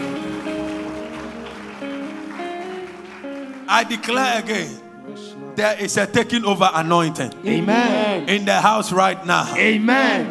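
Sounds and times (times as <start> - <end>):
audience clapping hands: 0.0 - 4.8
sustained keyboard notes: 0.0 - 10.2
speech: 3.7 - 4.8, 5.6 - 10.2.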